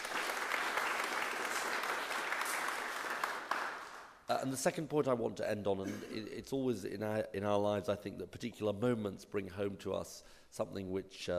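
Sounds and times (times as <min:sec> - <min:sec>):
audience applause: 0:00.0 - 0:04.1
speech: 0:04.3 - 0:11.3.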